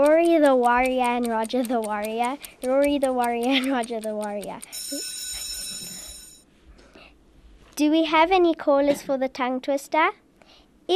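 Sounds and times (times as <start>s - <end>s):
speech: 0.0s - 5.2s, 7.8s - 10.2s
timer alarm ringing at the end of a tongue-twister challenge: 0.0s - 6.5s.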